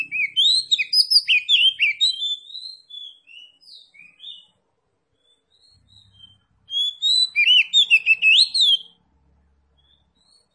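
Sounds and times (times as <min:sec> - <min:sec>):
oriental magpie-robin singing: 0:00.0 - 0:09.0, 0:09.7 - 0:10.5.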